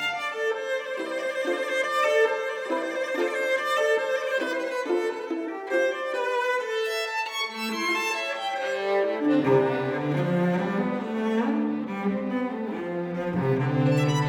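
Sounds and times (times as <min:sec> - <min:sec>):
cello: 0:00.0 - 0:14.2
violin: 0:00.0 - 0:14.2.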